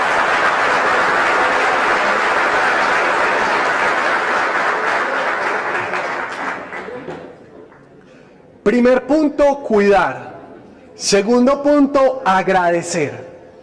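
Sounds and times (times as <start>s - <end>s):
audience applause: 0.0s - 7.9s
speech: 8.8s - 10.3s, 11.0s - 13.3s.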